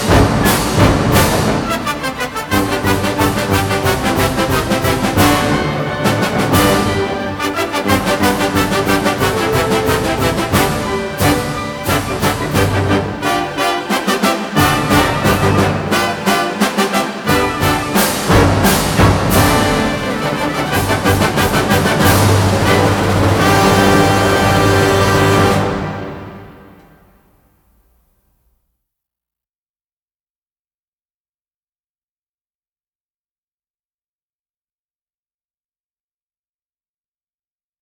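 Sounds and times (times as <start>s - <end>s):
polka: 0.0s - 27.0s.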